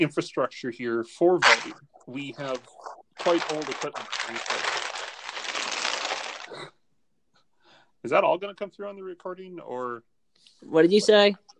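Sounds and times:
speech: 0.0s - 4.8s, 8.0s - 11.5s
people opening and crumpling bags: 3.2s - 6.6s.

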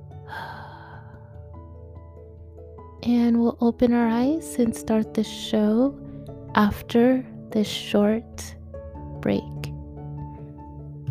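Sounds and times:
deep breath in and out during a guided breathing exercise: 0.2s - 1.5s
speech: 3.0s - 6.0s, 6.6s - 8.6s, 9.2s - 9.5s.

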